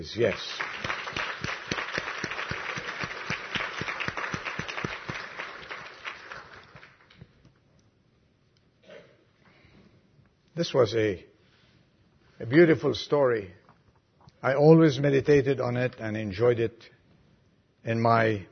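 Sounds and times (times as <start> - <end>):
speech: 0.0 - 0.7, 10.6 - 11.3, 12.4 - 13.6, 14.4 - 17.0, 17.8 - 18.5
audience applause: 0.2 - 7.2.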